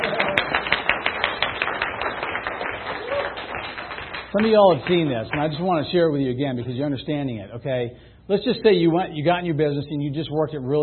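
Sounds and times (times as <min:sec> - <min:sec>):
audience clapping: 0:00.0 - 0:06.0
speech: 0:04.3 - 0:10.8.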